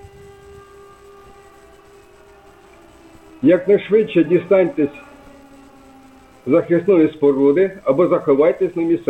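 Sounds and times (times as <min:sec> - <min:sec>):
air raid civil defense siren: 0:00.0 - 0:09.0
speech: 0:03.4 - 0:05.1, 0:06.4 - 0:09.0.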